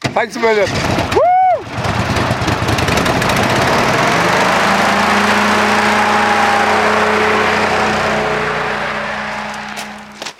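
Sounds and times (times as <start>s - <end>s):
hovercraft engine cranking, starting and roaring: 0.4s - 10.3s.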